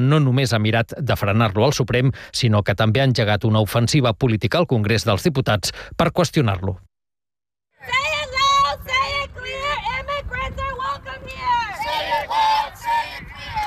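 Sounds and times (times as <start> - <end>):
speech: 0.0 - 6.9
protesters shouting and chanting in the street: 7.8 - 13.6.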